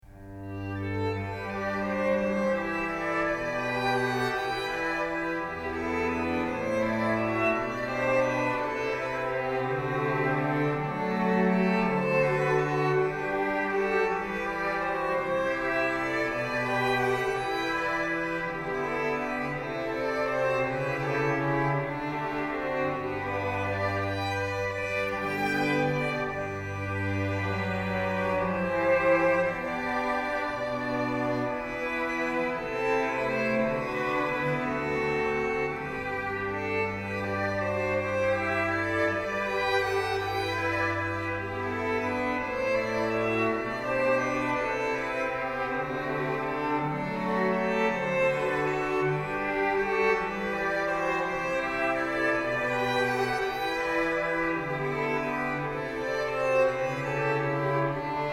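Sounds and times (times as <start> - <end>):
strings: 0.0 - 58.3.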